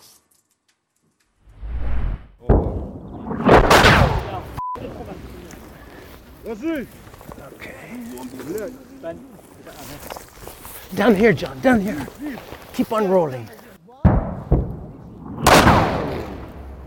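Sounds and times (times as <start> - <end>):
incoming artillery shells exploding in southern Ukraine, south of Mykolaiv: 2.5 - 4.6, 14.1 - 16.8
speech: 6.5 - 7.0, 7.6 - 10.2, 10.9 - 13.6.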